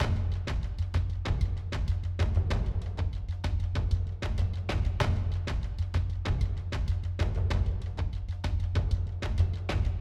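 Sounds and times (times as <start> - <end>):
interactive music: 0.0 - 9.9.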